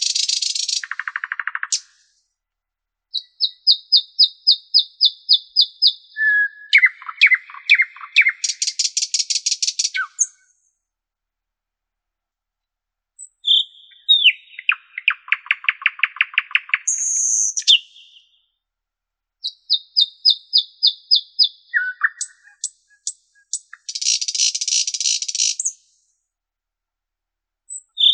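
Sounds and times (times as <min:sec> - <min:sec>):
Common nightingale singing: 0:00.0 - 0:02.2, 0:03.1 - 0:10.7, 0:13.2 - 0:18.6, 0:19.4 - 0:26.1, 0:27.7 - 0:28.1.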